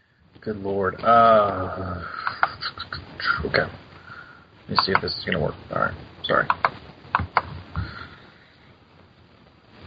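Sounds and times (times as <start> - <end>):
speech: 0.4 - 2.2, 3.4 - 3.8, 4.7 - 6.6
keyboard typing: 2.2 - 2.6, 4.7 - 5.4, 6.4 - 7.6.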